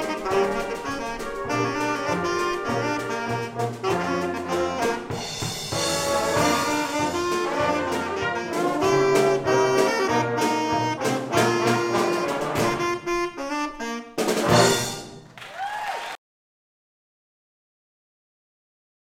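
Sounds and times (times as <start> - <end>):
saxophone: 0.0 - 15.1
brass: 0.0 - 15.4.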